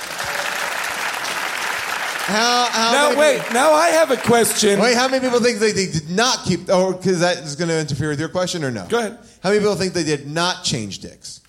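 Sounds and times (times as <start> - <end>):
audience applause: 0.0 - 5.6
speech: 2.3 - 11.4.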